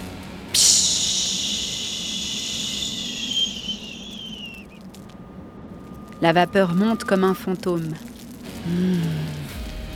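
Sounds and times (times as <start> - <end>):
hot ember hissing in water: 0.6 - 4.8
speech: 6.2 - 8.1, 8.7 - 9.4.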